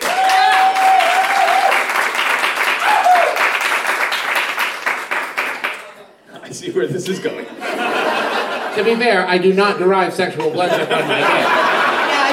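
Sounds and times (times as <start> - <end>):
audience applause: 0.0 - 6.0
laughter: 6.3 - 9.2, 10.3 - 12.3
speech: 6.8 - 8.0, 8.8 - 11.7.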